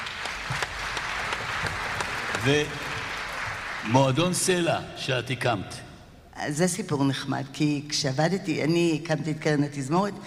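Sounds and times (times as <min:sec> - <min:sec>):
audience applause: 0:00.0 - 0:04.4
speech: 0:02.4 - 0:02.9, 0:03.8 - 0:05.8, 0:06.4 - 0:10.2.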